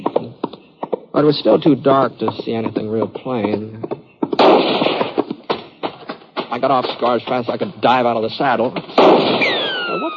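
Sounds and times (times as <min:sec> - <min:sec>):
speech: 0:01.2 - 0:04.8, 0:06.6 - 0:09.5
gunshots: 0:04.4 - 0:05.3, 0:08.8 - 0:10.1.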